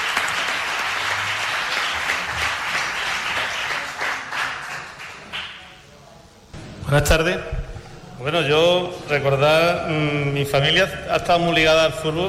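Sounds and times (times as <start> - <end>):
crowd applauding: 0.0 - 5.8
speech: 6.9 - 7.6, 8.2 - 12.2.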